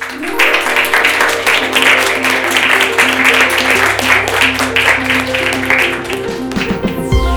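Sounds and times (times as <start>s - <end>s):
audience applause: 0.0s - 7.2s.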